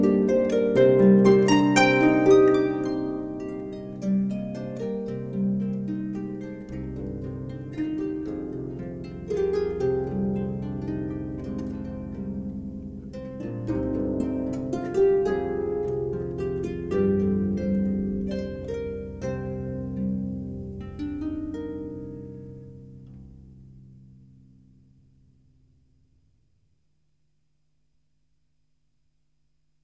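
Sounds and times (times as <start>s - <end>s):
Celtic harp playing: 0.0s - 23.4s.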